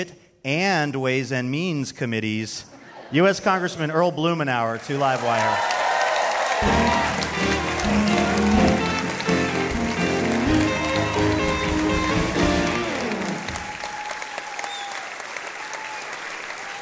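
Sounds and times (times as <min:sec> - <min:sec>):
speech: 0:00.0 - 0:05.7
audience applause: 0:04.9 - 0:16.8.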